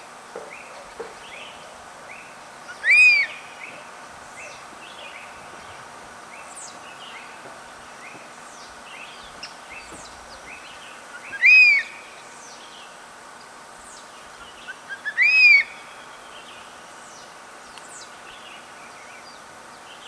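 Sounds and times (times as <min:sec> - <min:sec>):
black hawk-eagle whistled calls: 0:02.7 - 0:05.2, 0:11.2 - 0:11.9.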